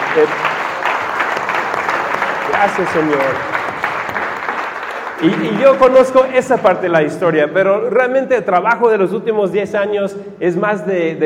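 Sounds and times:
audience applause: 0.0 - 6.2
speech: 0.2 - 0.5, 2.6 - 3.6, 5.2 - 11.2.

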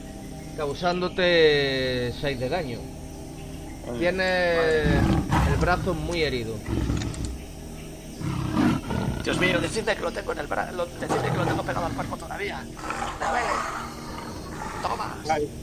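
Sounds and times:
speech: 0.6 - 3.0, 3.9 - 7.0, 9.2 - 13.9, 14.8 - 15.6
big cat roaring and snarling: 4.5 - 7.4, 8.2 - 9.8, 11.0 - 15.3.

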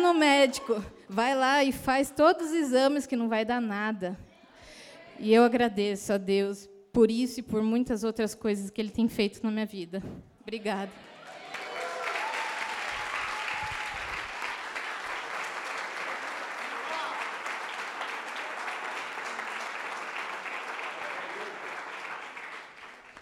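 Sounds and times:
speech: 0.1 - 4.3, 5.2 - 11.1
audience applause: 11.0 - 23.2.

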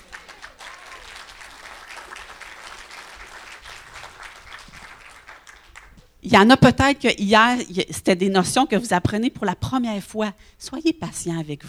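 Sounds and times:
audience applause: 0.0 - 6.1
speech: 6.2 - 11.6.

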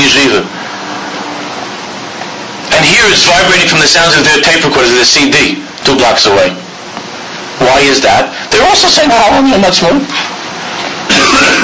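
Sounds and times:
speech: 0.2 - 0.6, 2.8 - 6.6, 7.6 - 10.3
sneeze: 11.1 - 11.6.

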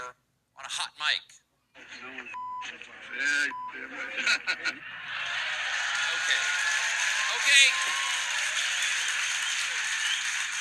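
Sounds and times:
speech: 0.7 - 5.4, 6.2 - 6.7, 7.4 - 8.1
laughter: 1.8 - 10.6
studio audience applause: 5.0 - 10.6.

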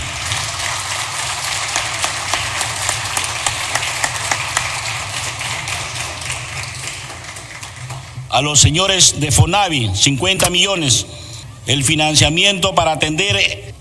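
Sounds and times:
audience applause: 0.0 - 8.6
speech: 8.4 - 13.7.

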